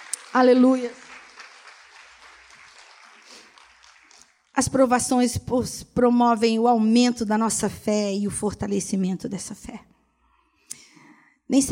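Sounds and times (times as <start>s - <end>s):
audience applause: 0.0s - 4.5s
speech: 0.3s - 1.0s, 4.6s - 9.9s, 11.5s - 11.6s.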